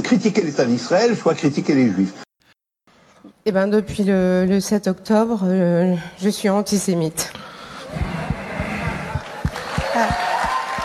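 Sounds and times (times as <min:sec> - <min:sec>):
speech: 0:00.1 - 0:02.2, 0:03.4 - 0:08.2
audience applause: 0:07.9 - 0:10.8.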